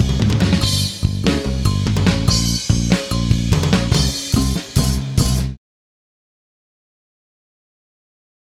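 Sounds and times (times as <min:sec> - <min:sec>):
drums and bass chase scene music: 0:00.0 - 0:05.6.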